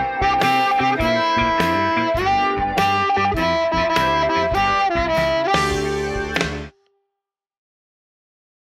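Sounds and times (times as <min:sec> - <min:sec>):
solo: 0:00.0 - 0:06.9.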